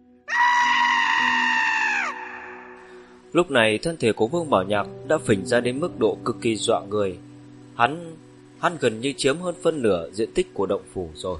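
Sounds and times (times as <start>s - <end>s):
anguished scream of pain from inside a cave dwelling: 0.3s - 2.9s
speech: 3.3s - 11.3s.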